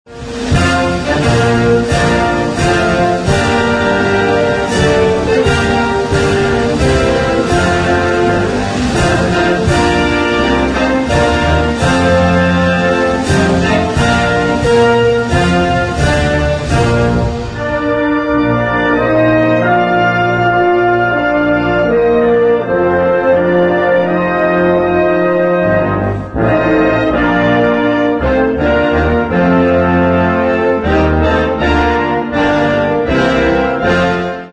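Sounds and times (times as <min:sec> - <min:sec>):
instrumental national anthem: 0:00.1 - 0:34.5.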